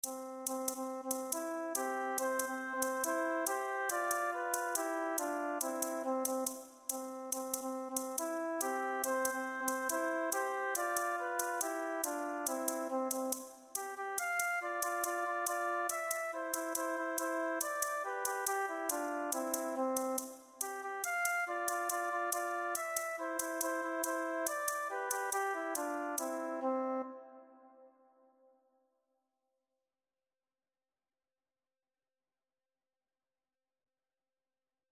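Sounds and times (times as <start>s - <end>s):
maracas: 0.0s - 26.7s.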